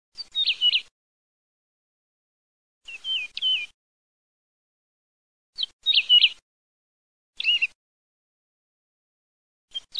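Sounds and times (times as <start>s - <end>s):
woodlark singing: 0.2s - 0.9s, 2.8s - 3.8s, 5.6s - 6.4s, 7.4s - 7.8s, 9.7s - 9.9s.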